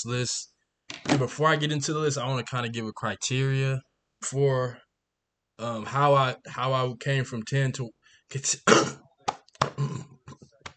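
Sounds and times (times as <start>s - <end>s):
speech: 0.0s - 4.8s, 5.6s - 9.0s
harsh raspy coughing: 8.6s - 9.0s, 9.7s - 10.2s.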